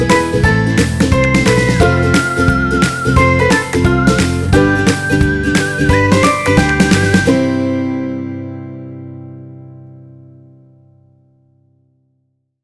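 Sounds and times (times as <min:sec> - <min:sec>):
happy music: 0:00.0 - 0:09.2.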